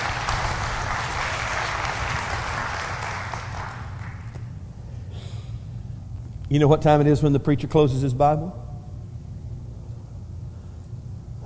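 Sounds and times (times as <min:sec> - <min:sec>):
crowd clapping: 0:00.0 - 0:04.5
speech: 0:06.5 - 0:08.7.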